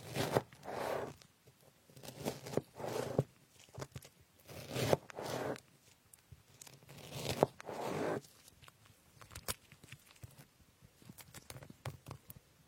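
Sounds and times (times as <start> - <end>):
knife slicing strawberries and other fruit: 0.0 - 1.2, 2.0 - 3.3, 4.5 - 5.6, 6.9 - 8.2.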